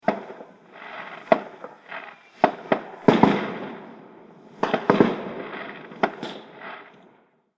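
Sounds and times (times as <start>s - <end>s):
fireworks bangs: 0.0s - 7.4s.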